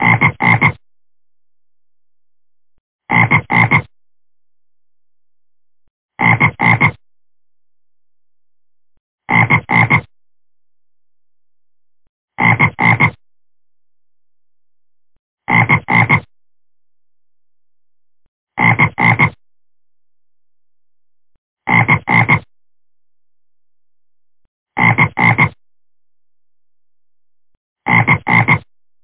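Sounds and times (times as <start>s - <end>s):
frog giving paired raspy croaks: 0.0s - 0.8s, 3.1s - 3.9s, 6.2s - 7.0s, 9.3s - 10.1s, 12.4s - 13.2s, 15.4s - 16.3s, 18.6s - 19.4s, 21.6s - 22.5s, 24.8s - 25.6s, 27.8s - 28.7s.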